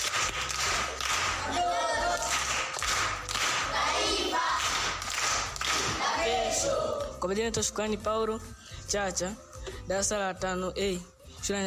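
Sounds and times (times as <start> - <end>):
schoolchildren clapping for a pupil in a primary school class: 0.0 - 6.4
speech: 7.2 - 11.6.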